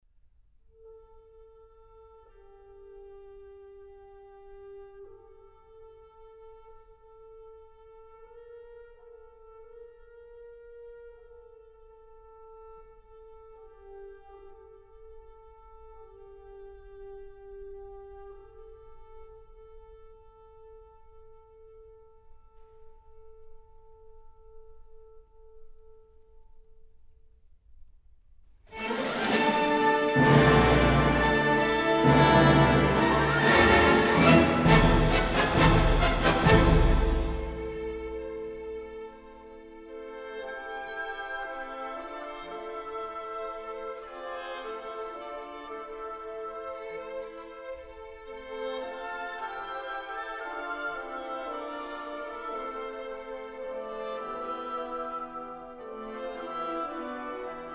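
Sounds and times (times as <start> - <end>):
symphony in A minor: 28.7 - 47.4, 48.0 - 57.7.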